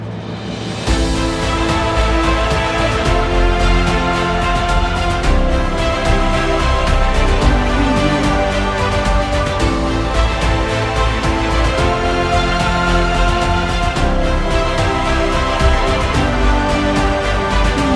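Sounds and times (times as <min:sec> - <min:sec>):
epic trailer music: 0:00.0 - 0:17.9.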